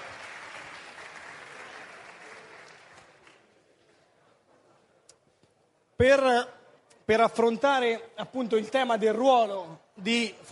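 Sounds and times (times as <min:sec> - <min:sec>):
crowd applauding: 0:00.0 - 0:03.6
speech: 0:06.0 - 0:10.5.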